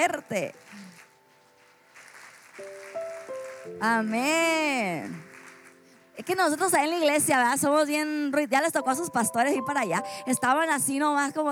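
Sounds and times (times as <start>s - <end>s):
speech: 0.0s - 1.0s, 3.6s - 5.3s, 6.2s - 11.5s
audience applause: 2.0s - 4.4s, 5.0s - 5.9s.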